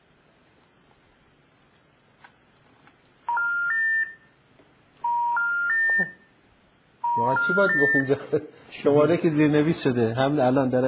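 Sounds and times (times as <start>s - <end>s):
telephone redial DTMF tones: 3.3s - 4.3s, 5.0s - 6.2s, 7.0s - 8.2s
speech: 7.2s - 10.8s.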